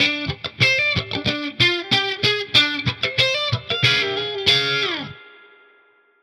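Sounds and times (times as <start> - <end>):
hip-hop guitar line: 0.0 - 5.9.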